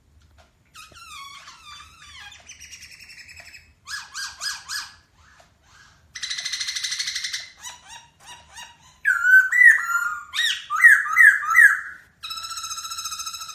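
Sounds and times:
masked laughingthrush singing: 0:07.4 - 0:12.0.

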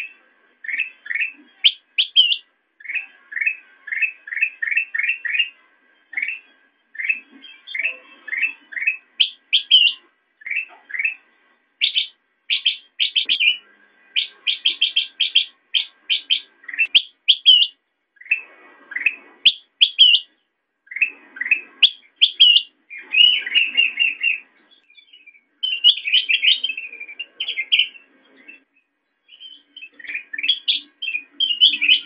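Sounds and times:
Sooty-headed bulbul calls: 0:00.0 - 0:28.7, 0:29.3 - 0:32.0.

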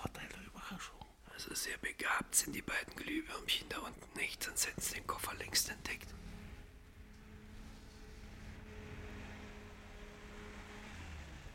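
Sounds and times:
speech: 0:00.7 - 0:06.2
car engine drone: 0:04.8 - 0:11.5.

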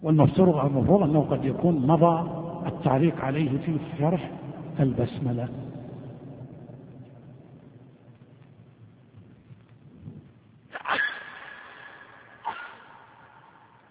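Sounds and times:
speech: 0:00.0 - 0:05.6
low hum: 0:00.2 - 0:13.9
sneeze: 0:10.7 - 0:13.4
sniff: 0:12.4 - 0:12.9.

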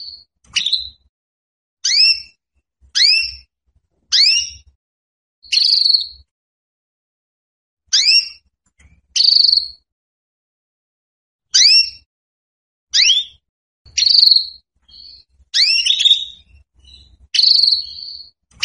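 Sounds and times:
female Belgian canary calling for mating: 0:00.0 - 0:01.1, 0:01.8 - 0:02.4, 0:03.0 - 0:03.5, 0:04.1 - 0:04.7, 0:05.4 - 0:06.3, 0:07.9 - 0:08.4, 0:09.1 - 0:09.8, 0:11.6 - 0:12.1, 0:12.9 - 0:18.6.

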